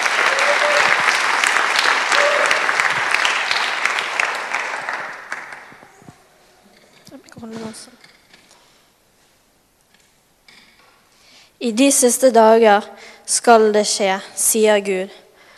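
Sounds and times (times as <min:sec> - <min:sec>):
audience applause: 0:00.0 - 0:06.4
speech: 0:11.7 - 0:15.2.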